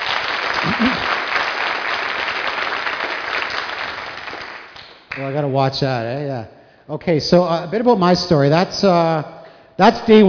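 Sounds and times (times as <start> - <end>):
audience applause: 0.0 - 4.8
speech: 0.6 - 1.0, 5.2 - 10.2.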